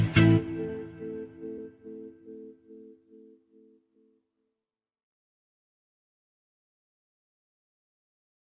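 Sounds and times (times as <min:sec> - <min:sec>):
smooth jazz: 0:00.0 - 0:01.3.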